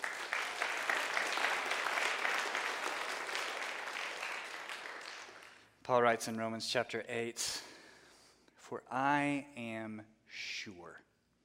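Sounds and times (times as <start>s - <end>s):
audience clapping: 0.0s - 5.8s
speech: 5.9s - 7.7s, 8.7s - 11.1s.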